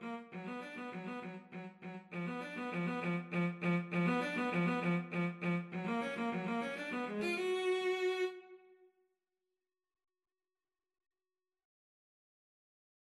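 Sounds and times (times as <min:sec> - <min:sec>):
cello duet: 0:00.2 - 0:08.6.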